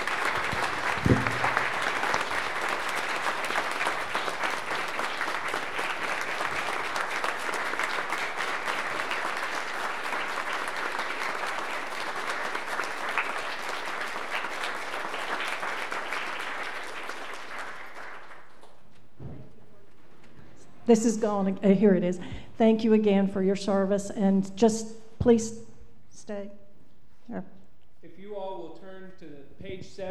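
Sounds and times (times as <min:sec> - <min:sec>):
sustained applause from a large audience: 0:00.0 - 0:18.9
speech: 0:20.9 - 0:25.6.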